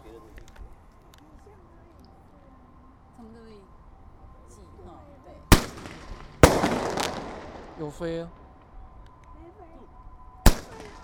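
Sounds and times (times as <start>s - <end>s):
fireworks going off: 5.5s - 8.7s, 10.5s - 11.0s
speech: 7.8s - 8.4s.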